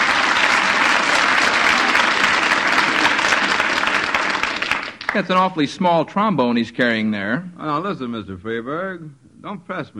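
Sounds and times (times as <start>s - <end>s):
audience applause: 0.0s - 5.5s
speech: 5.2s - 9.9s.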